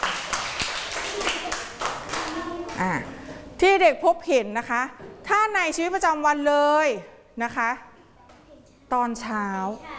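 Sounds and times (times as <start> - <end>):
children clapping in applause: 0.0 - 3.0
children chattering: 1.0 - 3.4
speech: 2.8 - 7.9, 8.9 - 9.9.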